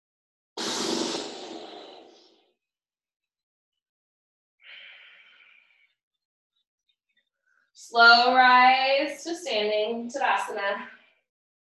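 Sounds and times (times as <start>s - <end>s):
breath pushed out through fluttering lips in a guided yoga session: 0.6s - 2.3s
speech: 7.8s - 11.0s.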